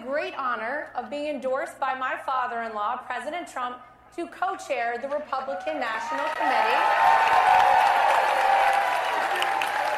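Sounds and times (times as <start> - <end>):
speech: 0.2 - 8.8
scattered cheers: 5.5 - 9.9
large conference crowd applauding: 5.9 - 9.9.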